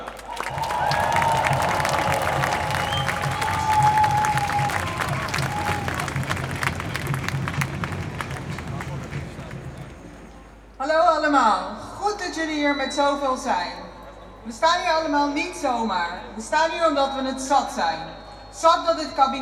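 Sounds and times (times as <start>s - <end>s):
cheering: 0.0s - 10.2s
crowd applauding to welcome a speaker: 0.0s - 10.7s
faint whistle tone: 0.4s - 8.9s, 12.2s - 14.6s, 17.1s - 19.3s
speech: 12.6s - 13.8s, 14.4s - 19.3s.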